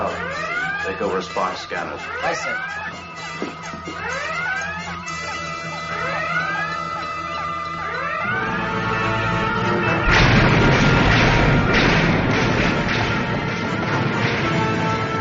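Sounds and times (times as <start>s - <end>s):
steady electronic drone: 0.0s - 15.1s
speech: 0.9s - 4.6s
loud rough noisy burst: 9.9s - 15.0s
Star Trek phaser fire from a starship: 10.0s - 14.3s.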